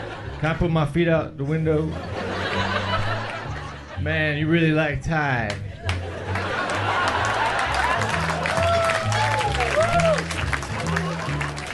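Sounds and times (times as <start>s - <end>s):
audience laughter: 0.0s - 0.5s, 1.7s - 4.0s, 5.6s - 11.7s
speech: 0.4s - 2.2s, 4.0s - 5.7s
audience clapping: 5.5s - 11.7s.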